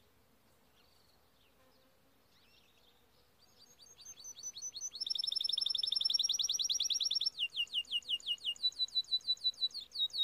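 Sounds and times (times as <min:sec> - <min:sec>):
faint background hiss: 0:00.0 - 0:10.2
canary singing: 0:03.6 - 0:10.2.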